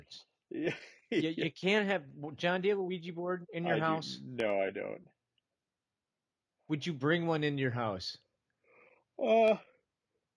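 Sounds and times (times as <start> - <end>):
speech: 0.1 - 5.2, 6.7 - 8.2, 9.2 - 9.7
person yawning: 9.2 - 9.6.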